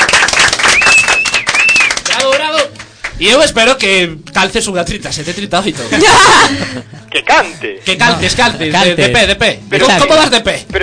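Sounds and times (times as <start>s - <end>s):
applause: 0.0s - 3.5s
speech: 3.2s - 10.8s
laughter: 5.7s - 8.5s.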